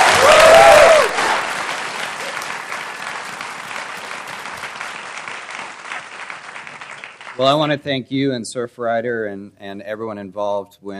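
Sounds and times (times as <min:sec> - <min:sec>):
audience applause: 0:00.0 - 0:07.7
speech: 0:07.4 - 0:10.9.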